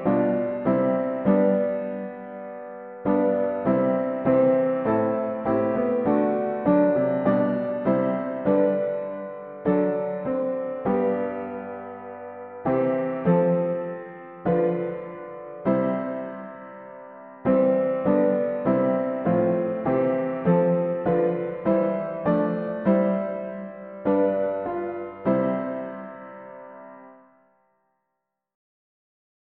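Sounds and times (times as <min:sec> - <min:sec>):
hymn on piano: 0:00.0 - 0:27.4.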